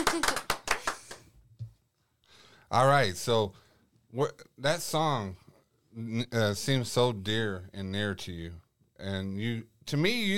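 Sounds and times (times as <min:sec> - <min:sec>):
hand claps: 0:00.0 - 0:01.8
speech: 0:02.7 - 0:05.4, 0:06.0 - 0:10.3.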